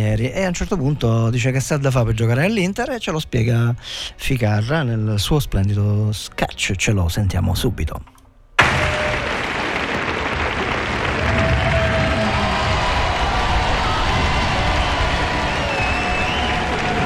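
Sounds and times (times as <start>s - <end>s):
speech: 0.0s - 8.2s
audience applause: 8.6s - 17.0s.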